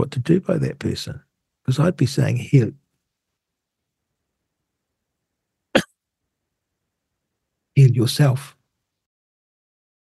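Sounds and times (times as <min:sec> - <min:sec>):
speech: 0:00.0 - 0:02.8, 0:07.8 - 0:08.6
person coughing: 0:05.8 - 0:06.0.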